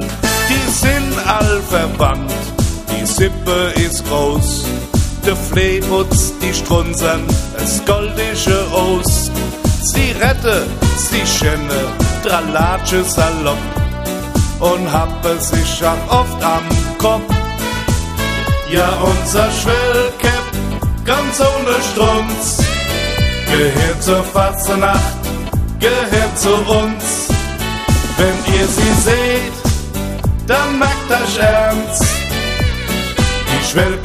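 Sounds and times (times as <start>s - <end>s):
reggae music: 0.0s - 34.0s.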